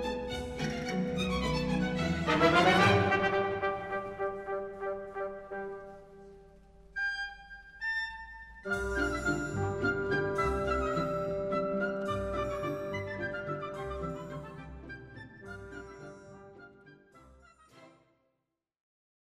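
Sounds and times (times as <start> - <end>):
orchestra playing: 0.0 - 6.6, 8.6 - 16.8.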